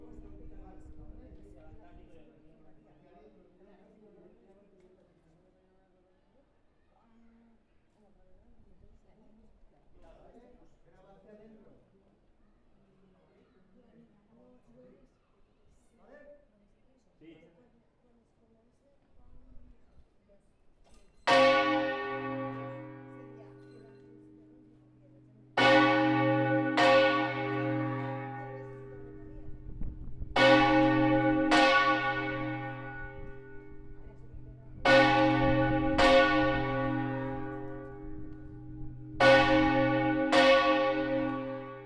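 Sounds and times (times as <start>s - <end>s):
bell: 21.0s - 41.8s.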